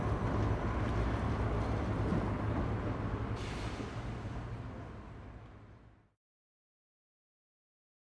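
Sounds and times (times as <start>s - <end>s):
artificial loops of railway sounds: 0.0s - 6.0s.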